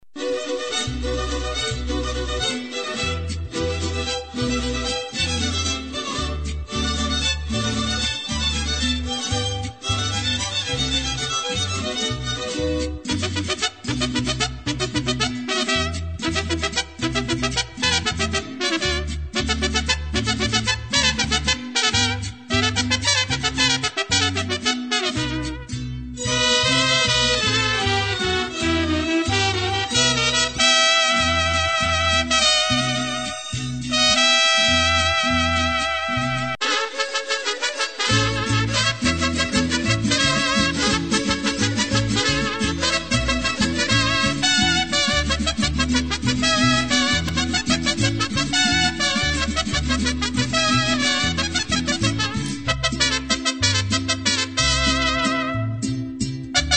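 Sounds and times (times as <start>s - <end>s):
mariachi music: 0.0s - 56.7s.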